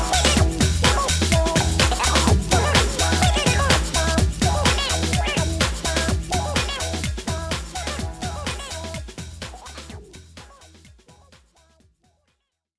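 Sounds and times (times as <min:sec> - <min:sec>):
remix music: 0:00.0 - 0:09.0.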